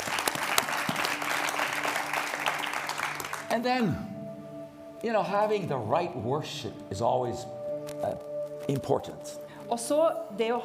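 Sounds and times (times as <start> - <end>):
audience applause: 0.0 - 3.5
speech: 3.5 - 4.1, 5.0 - 10.6.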